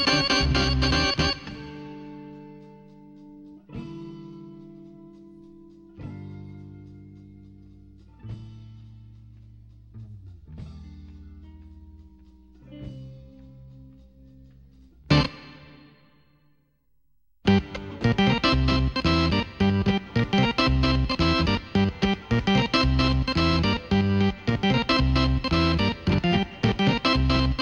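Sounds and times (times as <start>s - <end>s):
keyboard playing: 0.0s - 2.1s, 15.1s - 16.0s, 17.4s - 27.6s.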